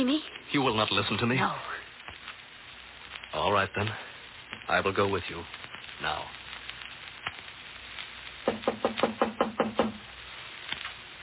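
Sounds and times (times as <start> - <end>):
speech: 0.0 - 1.8, 3.3 - 4.1, 4.7 - 6.4
knocking on a door: 8.5 - 10.0.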